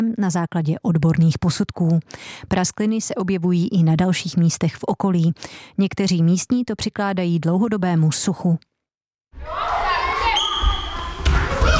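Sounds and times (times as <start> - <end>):
speech: 0.0 - 8.7, 9.3 - 9.8
people shouting in school gym: 9.4 - 11.7.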